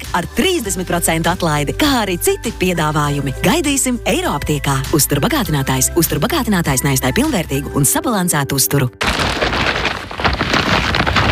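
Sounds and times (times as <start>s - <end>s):
speech: 0.1s - 9.8s
IKEA shopping bag full of goods rustling: 9.0s - 11.3s.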